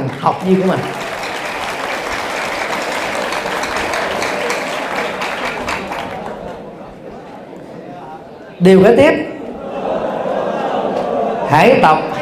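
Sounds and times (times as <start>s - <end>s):
audience applause: 0.0s - 7.4s
speech: 0.1s - 1.0s, 8.6s - 9.3s, 11.5s - 12.1s
laughter: 1.0s - 8.3s, 9.3s - 12.1s.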